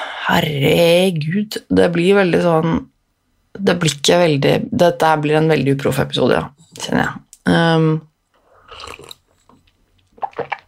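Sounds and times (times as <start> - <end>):
speech: 0.3 - 2.9, 3.6 - 8.1
coffee sipped quietly with slurping and swallowing: 8.4 - 10.6.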